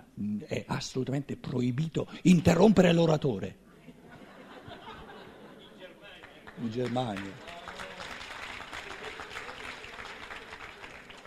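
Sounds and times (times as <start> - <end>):
speech: 0.2 - 3.6, 6.6 - 7.5
laughter: 3.7 - 6.4, 8.6 - 11.2
crowd applauding: 6.1 - 11.2.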